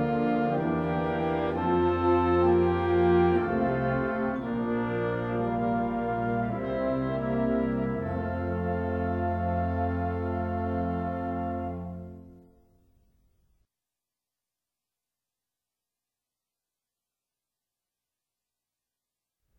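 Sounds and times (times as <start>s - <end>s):
concert F chorale: 0.0s - 12.9s.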